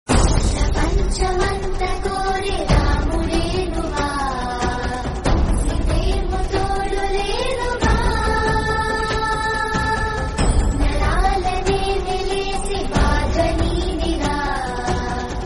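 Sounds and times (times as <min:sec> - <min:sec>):
romantic Telugu song: 0:00.2 - 0:15.4.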